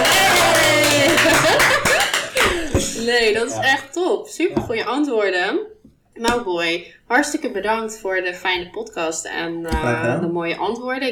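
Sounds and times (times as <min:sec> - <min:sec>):
cheering: 0:00.0 - 0:02.5
applause: 0:00.0 - 0:02.6
laughter: 0:00.0 - 0:03.9
speech: 0:03.2 - 0:11.1.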